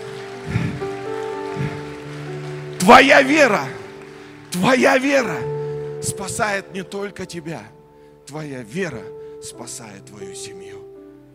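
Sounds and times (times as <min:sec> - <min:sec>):
audience applause: 0:00.0 - 0:06.5
speech: 0:02.9 - 0:03.8, 0:04.5 - 0:10.8.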